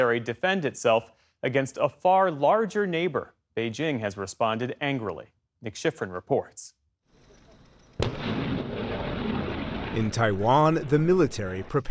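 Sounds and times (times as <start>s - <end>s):
speech: 0.0s - 6.8s, 8.0s - 8.3s, 10.0s - 11.9s
American artillery fire in Taiwan: 7.5s - 11.9s.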